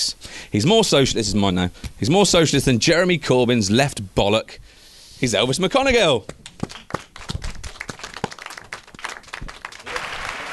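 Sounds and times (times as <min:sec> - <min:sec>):
speech: 0:00.5 - 0:06.5
fake applause sound effect: 0:06.6 - 0:10.5.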